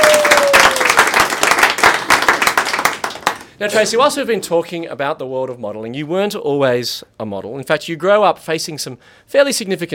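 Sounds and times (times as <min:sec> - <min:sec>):
applause: 0:00.0 - 0:03.6
speech: 0:03.6 - 0:09.9.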